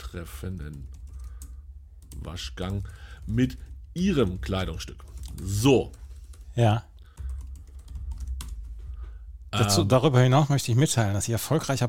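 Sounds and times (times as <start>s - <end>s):
speech: 0.1s - 1.0s, 2.1s - 6.0s, 6.6s - 6.9s, 9.5s - 11.8s
email typed on a computer keyboard: 0.1s - 9.1s.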